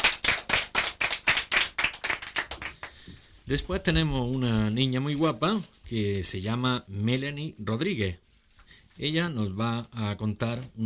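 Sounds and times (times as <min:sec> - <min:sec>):
audience applause: 0:00.0 - 0:03.0
speech: 0:03.5 - 0:08.2, 0:09.0 - 0:10.8.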